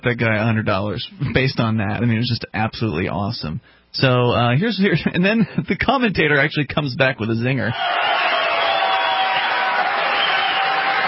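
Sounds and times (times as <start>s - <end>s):
speech: 0.0s - 8.5s
crowd applause: 7.8s - 11.0s.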